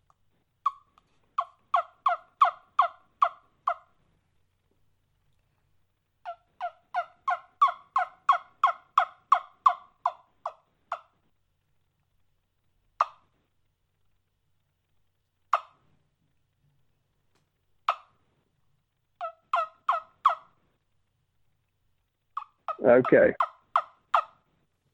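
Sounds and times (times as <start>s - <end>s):
turkey yelps on a handheld hunting turkey call: 0.6s - 3.9s, 6.3s - 11.1s, 19.2s - 20.6s, 22.4s - 24.4s
speech: 22.8s - 23.4s.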